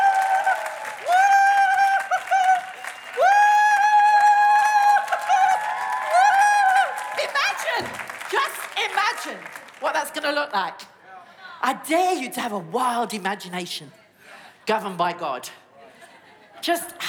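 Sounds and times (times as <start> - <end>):
audience cheering and applauding: 0.0 - 10.4
speech: 10.5 - 10.8, 11.6 - 14.0, 14.7 - 15.6, 16.6 - 17.0.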